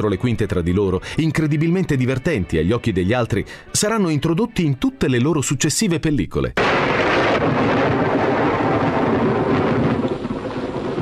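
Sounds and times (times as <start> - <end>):
speech: 0.0 - 7.7
rain hiss: 6.6 - 11.0
thunder rumbling: 6.6 - 11.0.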